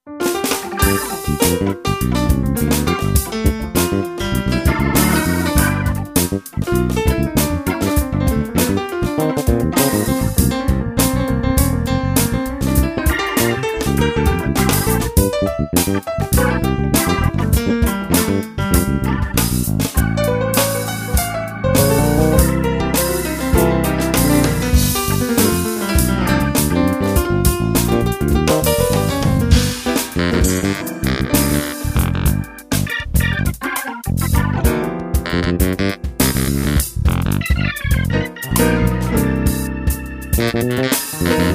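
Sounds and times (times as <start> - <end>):
funk music: 0.0 - 41.5.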